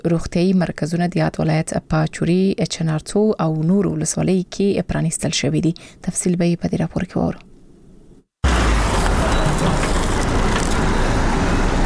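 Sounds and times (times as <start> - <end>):
speech: 0.0 - 7.5
vehicles loaded with medical supplies driving past in Uruzgan province: 8.4 - 11.8.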